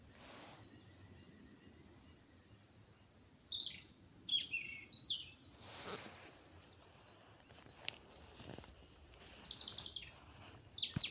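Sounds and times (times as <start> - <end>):
bird singing: 0.0 - 11.1.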